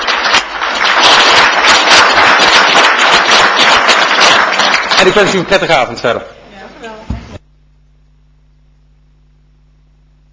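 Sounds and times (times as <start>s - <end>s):
audience applause: 0.0s - 6.2s
speech: 5.0s - 6.4s.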